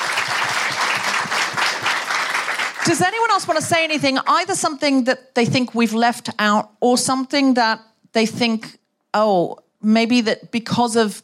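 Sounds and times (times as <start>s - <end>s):
audience applause at a town hall event: 0.0s - 2.9s
speech: 2.8s - 11.2s.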